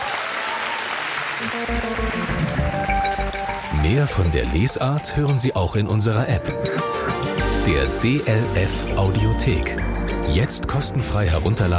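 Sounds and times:
audience applause: 0:00.0 - 0:04.2
speech: 0:01.4 - 0:02.6, 0:03.9 - 0:11.7
sustained musical tones: 0:01.4 - 0:11.5.

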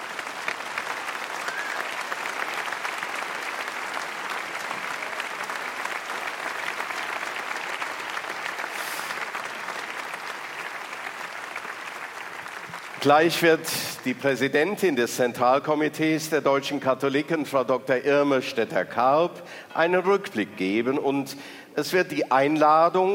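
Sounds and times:
warm applause from audience: 0:00.0 - 0:14.8
speech: 0:13.0 - 0:23.1.

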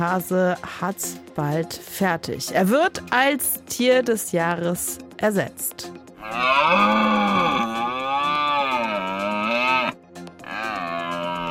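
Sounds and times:
speech: 0:00.0 - 0:07.4
red deer stag bellowing: 0:06.2 - 0:11.4.

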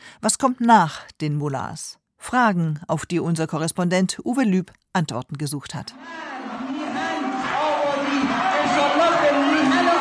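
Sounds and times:
speech: 0:00.2 - 0:06.3
students shouting down a government spokesman in an Iranian university: 0:06.0 - 0:09.9.

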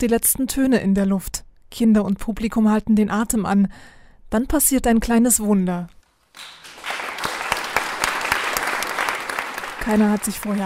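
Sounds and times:
speech: 0:00.0 - 0:06.6, 0:09.8 - 0:10.6
audience clapping after children's performance: 0:06.3 - 0:10.6.

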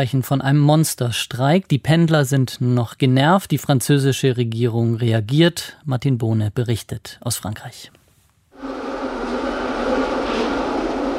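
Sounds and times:
speech: 0:00.0 - 0:08.0
Paris metro train running: 0:08.6 - 0:11.1.

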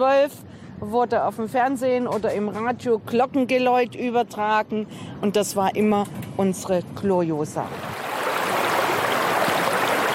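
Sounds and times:
speech: 0:00.0 - 0:07.9
rushing river water flowing beneath a historic stone bridge: 0:07.6 - 0:10.1.

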